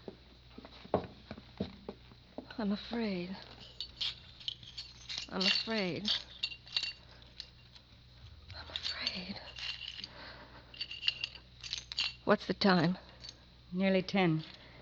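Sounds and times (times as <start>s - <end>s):
speech: 2.6s - 4.2s, 5.3s - 6.3s, 12.3s - 13.0s, 13.7s - 14.5s
broken pieces being gathered off the floor: 3.4s - 7.9s, 8.5s - 13.4s.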